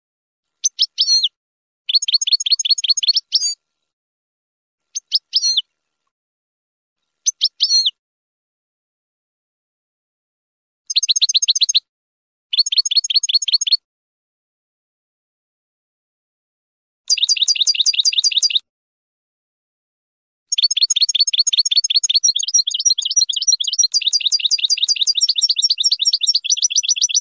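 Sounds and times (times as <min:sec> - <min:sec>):
finch singing: 0:00.6 - 0:01.3, 0:01.9 - 0:03.6, 0:04.9 - 0:05.7, 0:07.2 - 0:08.0, 0:10.9 - 0:11.8, 0:12.5 - 0:13.8, 0:17.1 - 0:18.6, 0:20.5 - 0:27.2.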